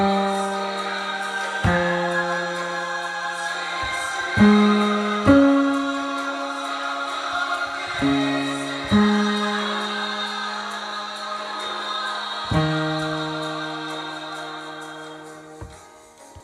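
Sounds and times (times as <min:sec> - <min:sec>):
background bass voice singing single part: 0:00.0 - 0:15.7.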